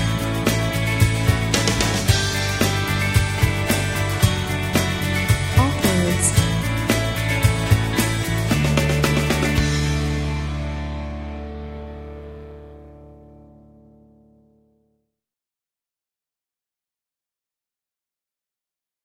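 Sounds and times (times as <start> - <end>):
uplifting energetic and inspiring guitar: 0.0 - 14.6.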